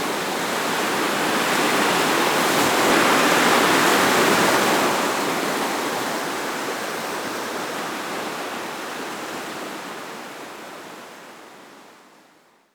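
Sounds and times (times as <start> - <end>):
waves: 0.0 - 9.9.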